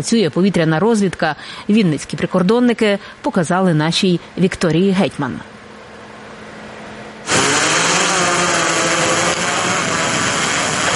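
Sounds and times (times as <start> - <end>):
speech: 0.0 - 5.6
drone taking off and buzzing: 7.2 - 10.9.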